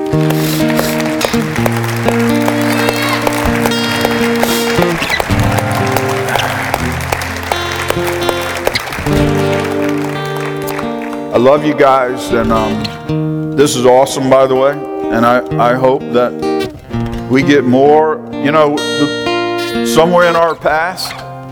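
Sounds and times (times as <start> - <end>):
hand clapping: 0.0 - 11.8
speech: 0.1 - 0.7, 11.4 - 16.4, 17.3 - 19.2, 19.8 - 21.3.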